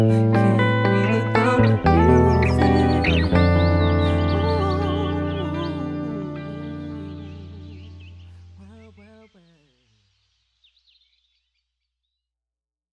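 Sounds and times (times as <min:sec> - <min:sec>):
melodic interlude: 0:00.1 - 0:08.4.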